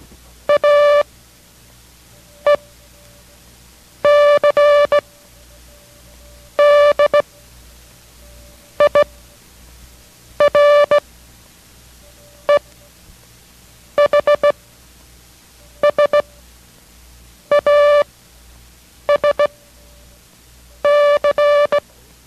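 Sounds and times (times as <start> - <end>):
Morse code characters sent as buzzy tones: 0.5 - 1.0, 2.2 - 3.4, 4.0 - 7.4, 8.2 - 9.2, 10.4 - 11.0, 14.0 - 14.6, 15.8 - 16.4, 17.5 - 18.0, 19.1 - 20.0, 20.8 - 21.8.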